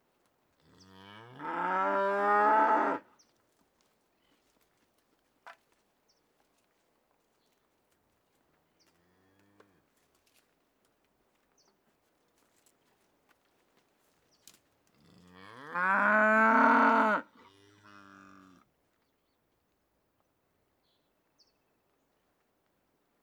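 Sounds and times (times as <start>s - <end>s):
cattle in countryside in Uruguay by day: 0.6s - 3.1s, 14.9s - 18.7s.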